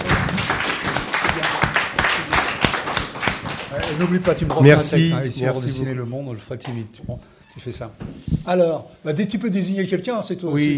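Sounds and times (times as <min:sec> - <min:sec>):
audience applause: 0:00.0 - 0:04.8
speech: 0:03.9 - 0:10.7.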